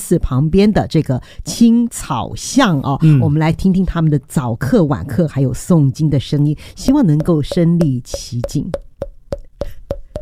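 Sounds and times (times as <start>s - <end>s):
speech: 0.1s - 8.9s
voice imitating a wooden fish temple block: 6.9s - 10.2s.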